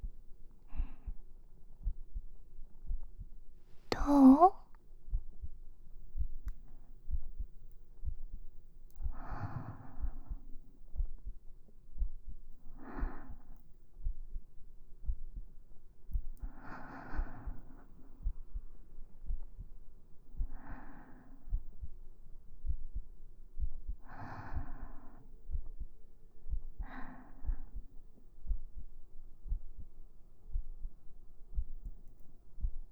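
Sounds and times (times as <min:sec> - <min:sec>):
heartbeat heard as if listening to someone's heart: 0:00.0 - 0:04.0, 0:05.1 - 0:32.8.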